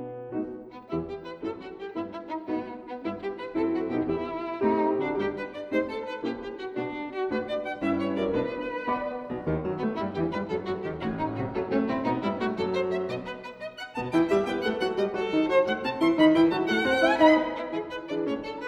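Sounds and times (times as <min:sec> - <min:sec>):
violin sonata: 0:00.3 - 0:18.6.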